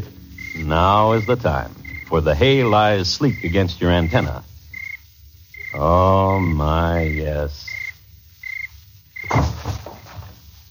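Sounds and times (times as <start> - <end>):
speech: 0.7 - 4.5, 5.7 - 7.8
thud of body falling on a cricket: 9.2 - 10.4.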